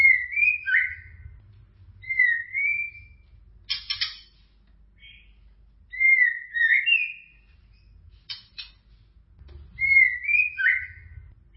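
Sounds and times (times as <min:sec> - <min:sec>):
white-rumped shama song with whistles and harsh scratchy bursts: 0:00.0 - 0:04.4, 0:05.9 - 0:08.7, 0:09.6 - 0:11.5.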